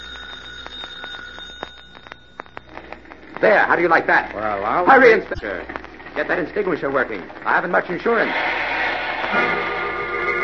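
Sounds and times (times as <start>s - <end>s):
doorbell ringing: 0.0s - 2.6s
speech: 3.4s - 8.6s, 9.3s - 9.7s.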